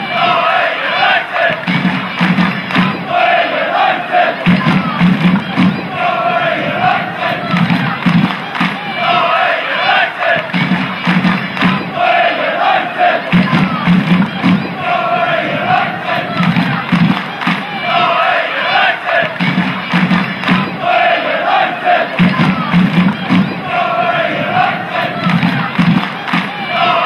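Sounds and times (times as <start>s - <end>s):
Galway United fans clapping: 0.0s - 27.0s
football fans chanting: 0.0s - 27.0s.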